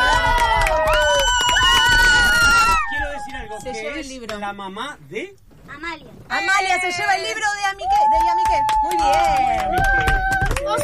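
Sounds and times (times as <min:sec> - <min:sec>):
audience applause and cheering: 0:00.0 - 0:03.8, 0:07.8 - 0:10.8
speech: 0:04.2 - 0:10.8.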